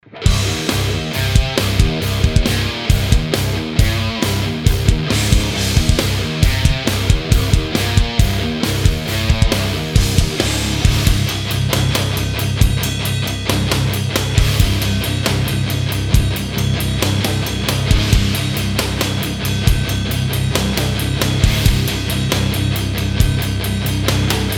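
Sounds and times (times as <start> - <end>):
instrument played through a Peavey preamp: 0.3 - 24.5.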